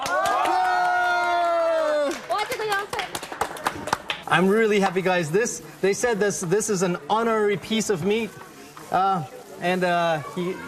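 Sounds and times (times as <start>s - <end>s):
group clapping at a gathering: 0.0s - 1.0s, 2.0s - 4.3s
group cheering at a gathering: 0.0s - 2.4s
speech: 4.4s - 10.6s.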